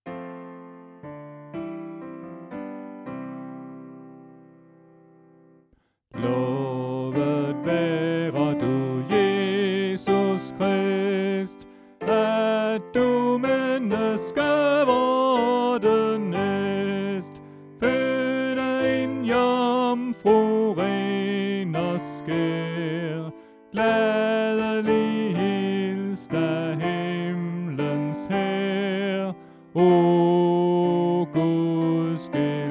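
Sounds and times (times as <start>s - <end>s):
soprano voice: 6.2s - 32.6s.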